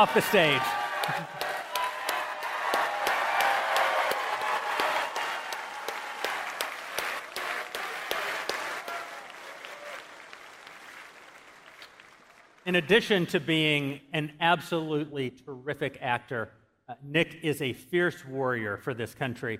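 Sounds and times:
speech: 0.0 - 1.4, 12.7 - 19.5
crowd applause: 0.0 - 12.7.

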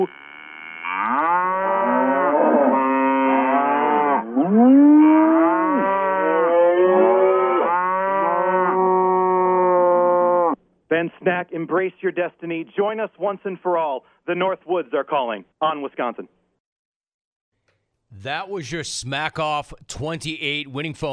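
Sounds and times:
speech: 0.0 - 0.3, 11.0 - 16.4, 18.1 - 21.1
cow mooing: 0.0 - 10.6.

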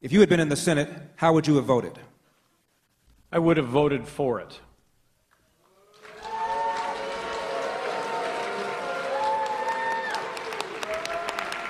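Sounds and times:
speech: 0.0 - 2.1, 3.3 - 4.7
audience booing: 5.7 - 11.6.

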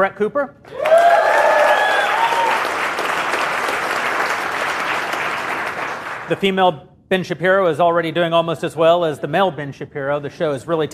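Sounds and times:
speech: 0.0 - 1.1, 6.3 - 10.9
audience applause: 0.7 - 6.3.

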